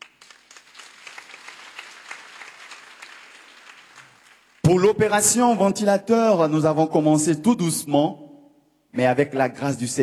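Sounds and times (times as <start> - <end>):
audience applause: 0.0 - 4.7
speech: 4.7 - 8.2, 9.0 - 10.0.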